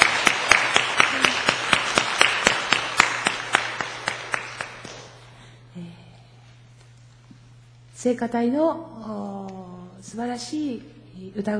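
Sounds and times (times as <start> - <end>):
church congregation clapping in a Christmas service: 0.0 - 5.4
low constant hum: 0.0 - 11.5
speech: 8.0 - 9.3, 10.1 - 11.5.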